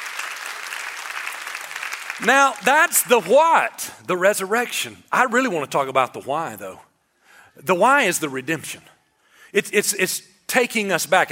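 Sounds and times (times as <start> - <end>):
audience clapping hands: 0.0 - 3.9
speech: 2.2 - 6.9, 7.6 - 8.9, 9.5 - 11.3.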